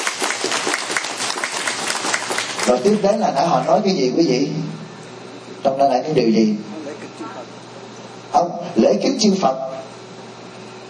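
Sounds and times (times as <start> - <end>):
audience clapping at a Buddhist teaching session: 0.0 - 3.8
speech: 2.7 - 4.9, 5.6 - 6.7, 8.4 - 9.8.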